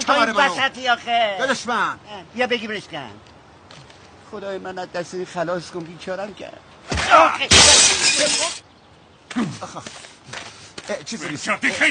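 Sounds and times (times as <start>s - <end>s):
speech: 0.1s - 3.3s, 4.3s - 8.6s, 9.3s - 11.9s
window glass shattering from a thrown coconut: 6.9s - 8.6s.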